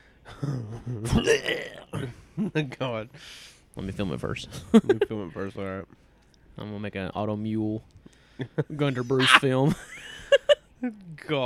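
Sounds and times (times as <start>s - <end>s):
speech: 0.4s - 6.0s, 6.6s - 11.4s
person burping: 0.5s - 2.1s.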